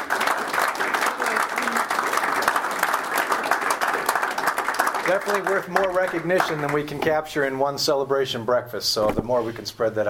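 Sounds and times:
crowd applauding: 0:00.0 - 0:07.1
speech: 0:05.1 - 0:10.0.

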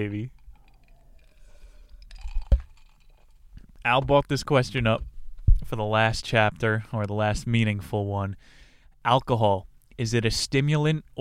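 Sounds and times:
speech: 0:00.0 - 0:00.4, 0:03.8 - 0:11.1
ice water in a glass: 0:00.4 - 0:03.3.

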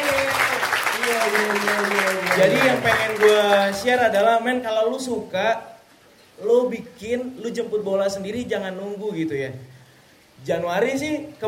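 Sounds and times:
audience applause: 0:00.0 - 0:03.9
speech: 0:01.1 - 0:05.8, 0:06.4 - 0:09.7, 0:10.4 - 0:11.4.

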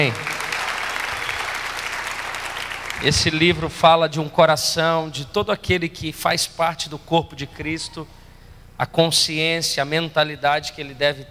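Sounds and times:
speech: 0:00.0 - 0:00.3, 0:03.0 - 0:08.2, 0:08.8 - 0:11.3
audience applause: 0:00.0 - 0:03.5.

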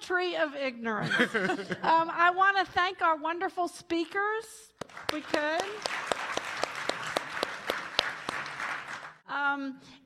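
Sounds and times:
speech: 0:00.1 - 0:06.0, 0:09.3 - 0:10.0
laughter: 0:01.0 - 0:02.1
audience applause: 0:04.8 - 0:09.2.

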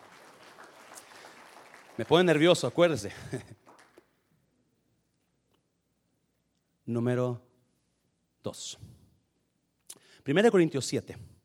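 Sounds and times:
audience applause: 0:00.0 - 0:04.0
speech: 0:02.0 - 0:03.6, 0:06.9 - 0:07.5, 0:08.4 - 0:09.0, 0:10.3 - 0:11.3
laughter: 0:03.1 - 0:03.6.

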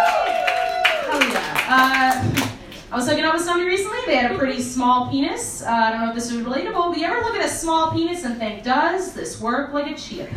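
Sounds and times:
audience clapping: 0:00.0 - 0:02.9
speech: 0:01.7 - 0:10.3.

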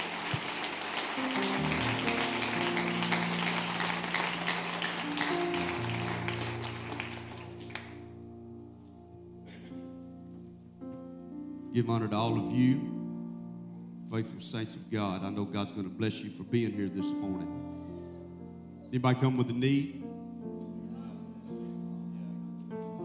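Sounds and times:
crowd clapping: 0:00.0 - 0:08.0
sustained organ chords: 0:00.0 - 0:23.0
speech: 0:11.8 - 0:13.0, 0:14.1 - 0:17.8, 0:18.9 - 0:20.0.

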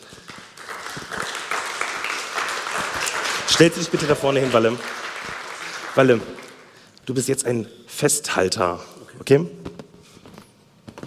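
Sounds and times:
applause: 0:00.0 - 0:06.9
speech: 0:03.5 - 0:05.0, 0:06.0 - 0:06.4, 0:07.1 - 0:09.6.

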